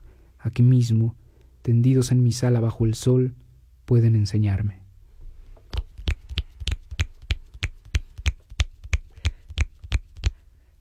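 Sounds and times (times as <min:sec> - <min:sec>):
speech: 0:00.4 - 0:04.8
finger snapping: 0:05.7 - 0:10.4.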